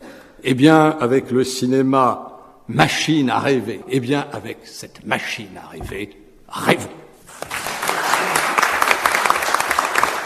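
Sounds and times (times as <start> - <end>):
speech: 0.4 - 7.0
audience applause: 7.4 - 10.2.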